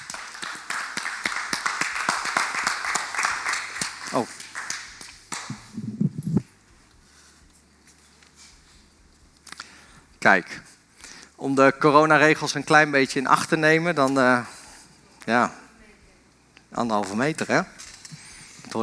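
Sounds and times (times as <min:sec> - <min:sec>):
crowd applause: 0:00.0 - 0:05.9
speech: 0:04.1 - 0:04.4, 0:10.2 - 0:10.7, 0:11.4 - 0:14.5, 0:15.2 - 0:15.6, 0:16.8 - 0:17.8.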